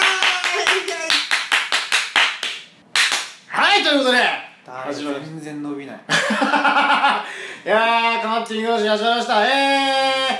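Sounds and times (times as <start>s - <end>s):
hand clapping: 0.0s - 3.5s
speech: 3.9s - 10.3s.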